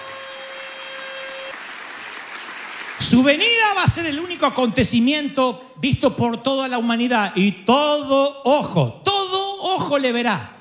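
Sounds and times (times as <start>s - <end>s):
audience applauding: 0.0s - 4.4s
speech: 3.0s - 9.0s, 9.9s - 10.5s.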